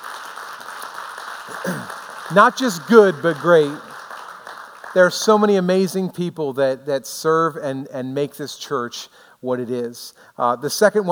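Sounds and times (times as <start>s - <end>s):
audience applause: 0.0s - 5.2s
speech: 1.5s - 3.9s, 5.0s - 11.1s.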